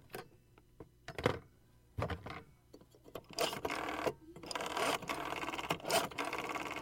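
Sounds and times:
rotary phone dial turning and clicking: 3.1 - 6.7.

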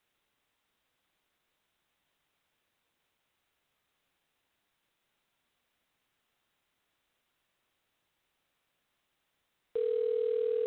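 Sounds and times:
telephone ringback tone: 9.8 - 10.6.

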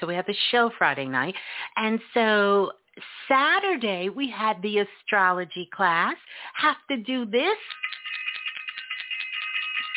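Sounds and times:
speech: 0.0 - 7.8
bell ringing: 7.6 - 9.9.

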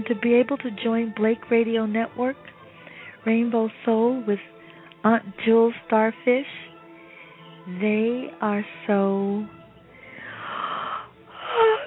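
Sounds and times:
speech: 0.0 - 2.6, 3.2 - 6.6, 7.7 - 9.6
person yawning: 10.4 - 11.8.

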